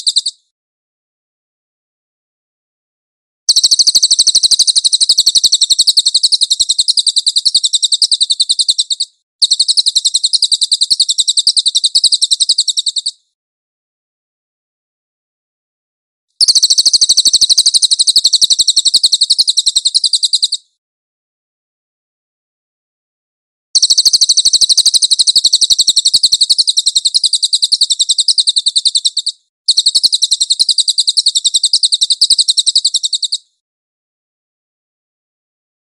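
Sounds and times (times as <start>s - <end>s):
Cililin buzzy chirping trill: 3.5s - 13.1s, 16.4s - 20.6s, 23.8s - 33.4s.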